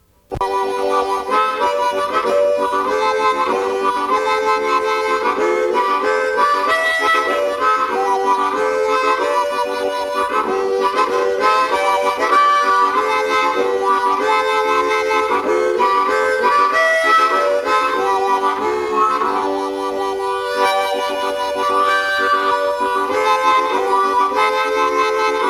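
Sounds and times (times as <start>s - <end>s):
harmonicas playing: 0.3s - 25.4s.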